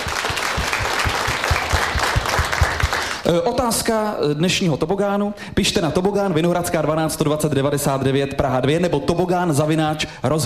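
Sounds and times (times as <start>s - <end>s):
audience applause: 0.0s - 3.3s
speech: 3.2s - 10.4s.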